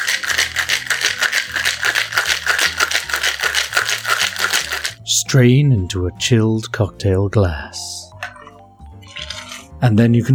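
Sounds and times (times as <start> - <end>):
cocktail shaker being shaken with ice: 0.0 - 5.0, 8.2 - 9.7
soft bass-heavy music line: 0.0 - 10.3
speech: 5.3 - 7.9, 9.8 - 10.3.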